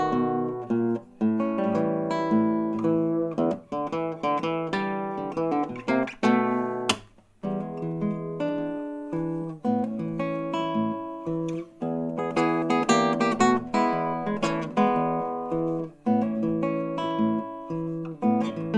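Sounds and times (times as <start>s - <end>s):
bluesy guitar: 0.0s - 18.7s.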